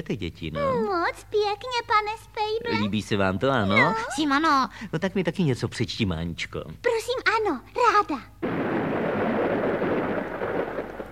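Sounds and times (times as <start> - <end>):
speech: 0.0 - 8.6
thunder rumbling during a storm: 8.4 - 11.0.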